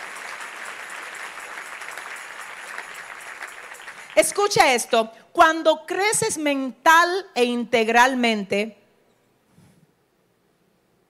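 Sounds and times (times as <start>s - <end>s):
audience applause: 0.0s - 4.5s
speech: 4.2s - 8.8s.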